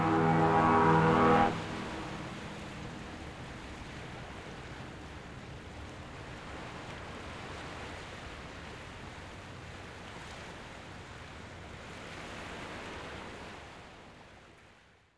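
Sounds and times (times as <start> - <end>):
harbour ambience: 0.0 - 5.8.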